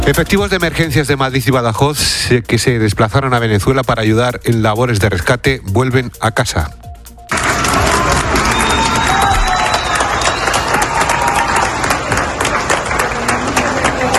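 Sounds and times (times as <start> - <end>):
speech: 0.0 - 6.9
crowd at Valencia airport in Carabobo applauding returning emergency teams: 7.3 - 14.1
whistle-like tones: 8.4 - 10.8.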